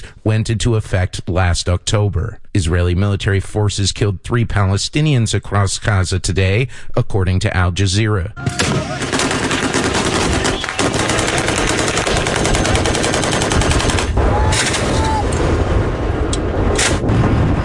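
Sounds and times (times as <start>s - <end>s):
speech: 0.2s - 9.2s
heavy gunshots: 8.4s - 17.6s
machine-gun fire from Saudi-backed Yemeni government forces shooting at Houthi fighters: 8.5s - 17.6s.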